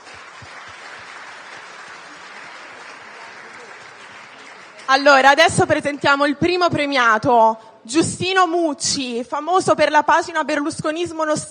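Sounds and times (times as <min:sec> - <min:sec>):
audience applause: 0:00.0 - 0:06.0
speech: 0:04.9 - 0:11.4.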